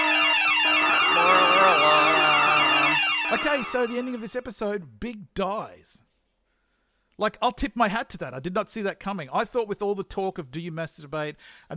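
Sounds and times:
air horn spoiler alarm effect: 0.0 - 4.5
speech: 3.4 - 6.0, 7.2 - 11.7.

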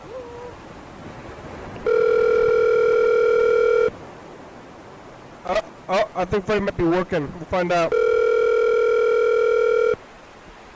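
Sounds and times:
telephone dial tone while placing a call: 1.8 - 4.0, 7.9 - 10.0
speech: 5.9 - 8.0.

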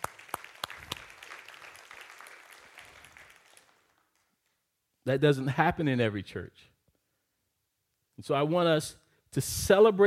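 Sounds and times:
audience clapping: 0.0 - 4.6
speech: 5.0 - 6.7, 8.2 - 10.0.

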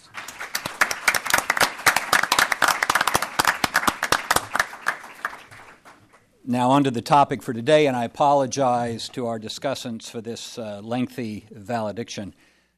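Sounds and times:
audience applause: 0.0 - 6.2
speech: 6.5 - 12.5.

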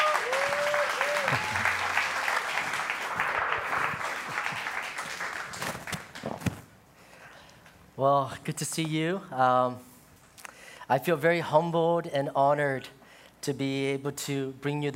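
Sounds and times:
round of applause: 0.0 - 6.2
speech: 8.0 - 9.9, 10.9 - 14.9.

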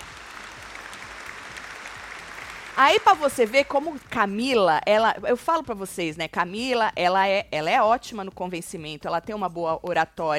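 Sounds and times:
hand clapping: 0.0 - 4.1
speech: 2.8 - 10.3.

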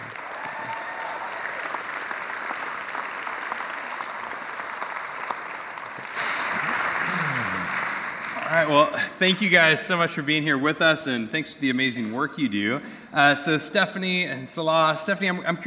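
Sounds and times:
audience applause welcoming guests at a morning gathering: 0.0 - 9.2
speech: 8.5 - 15.6.

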